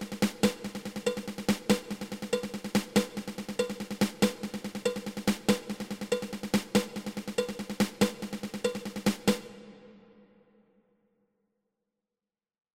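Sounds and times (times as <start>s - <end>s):
ten stroke drum roll: 0.0s - 10.0s.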